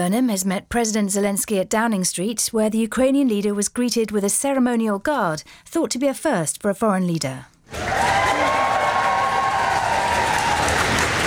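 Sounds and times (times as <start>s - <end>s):
speech: 0.0s - 8.6s
civil servants at Downing Street cheering: 7.7s - 11.2s
civil servants at Downing Street clapping: 7.7s - 11.2s.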